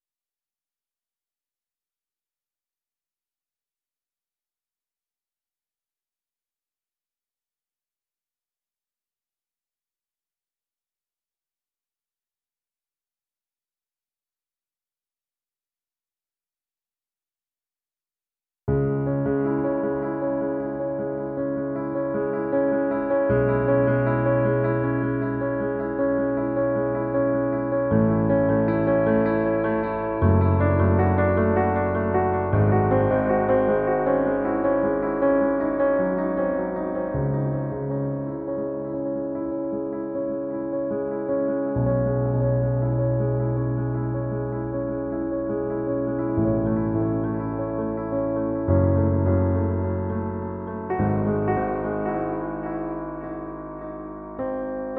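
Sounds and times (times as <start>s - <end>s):
piano piece: 18.7s - 54.9s.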